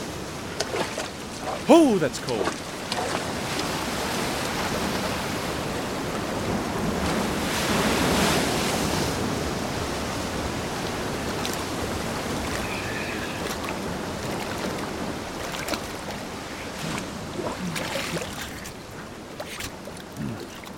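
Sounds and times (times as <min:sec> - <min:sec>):
ocean waves breaking on shore: 0:00.0 - 0:20.7
speech: 0:01.6 - 0:02.7.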